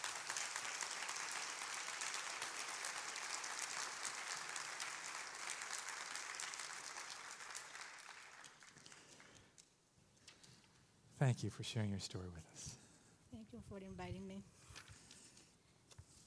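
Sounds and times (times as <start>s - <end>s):
church congregation applauding to welcome a speaker: 0.0s - 9.5s
speech: 11.2s - 12.8s, 13.6s - 14.6s.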